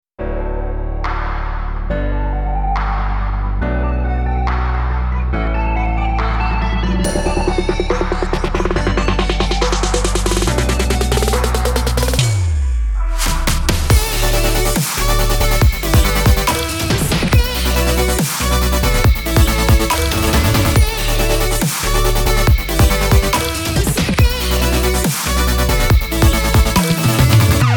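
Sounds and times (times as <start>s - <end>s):
upbeat exciting vlog background intro music: 1.0s - 27.7s.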